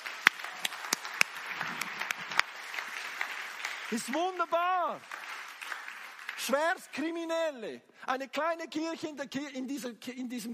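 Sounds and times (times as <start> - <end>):
audience applause: 0.0 - 6.8
speech: 3.9 - 5.2, 6.4 - 10.5.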